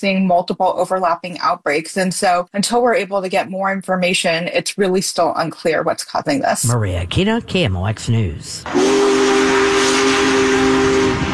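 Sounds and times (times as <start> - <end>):
speech: 0.0 - 9.7
whistle of Big Boy, world's largest operating steam locomotive, arriving in St. Louis: 8.6 - 11.3.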